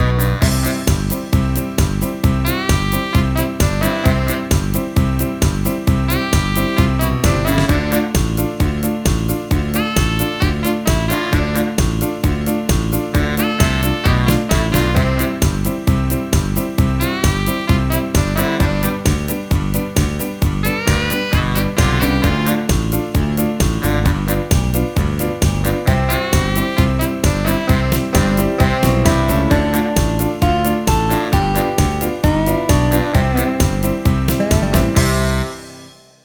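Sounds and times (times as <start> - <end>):
blues harmonica: 0.0 - 5.3, 5.9 - 8.8, 9.5 - 35.7.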